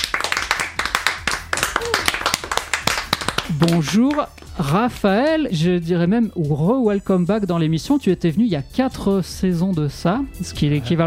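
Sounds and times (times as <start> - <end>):
audience applause: 0.0 - 4.4
speech: 3.6 - 11.0.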